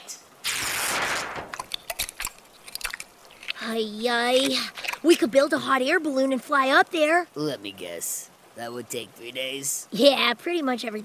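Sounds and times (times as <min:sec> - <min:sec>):
hissy rush: 0:00.4 - 0:03.8
crunching and chewing on a wooden barn: 0:01.6 - 0:05.4
speech: 0:03.7 - 0:11.0.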